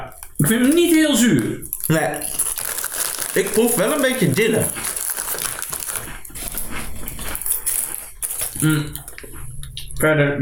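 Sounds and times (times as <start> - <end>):
potato chip being chewed: 0.0 - 9.9
speech: 0.4 - 2.4, 3.4 - 4.9, 8.6 - 9.0, 10.0 - 10.4.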